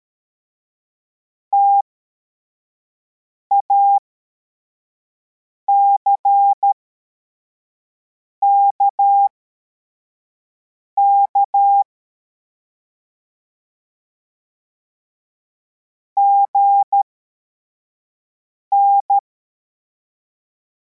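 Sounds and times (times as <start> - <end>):
CW morse code beeps: 1.6 - 1.8, 3.5 - 4.0, 5.7 - 6.8, 11.0 - 11.9, 16.2 - 17.0, 18.7 - 19.2.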